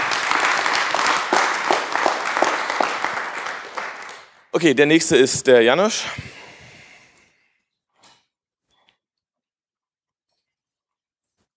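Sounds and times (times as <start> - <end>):
audience applause: 0.0 - 4.4
speech: 4.6 - 6.3.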